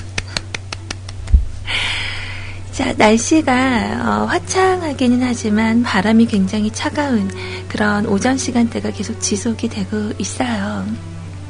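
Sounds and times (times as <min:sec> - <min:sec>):
hand clapping: 0:00.0 - 0:01.4
speech: 0:02.8 - 0:11.2.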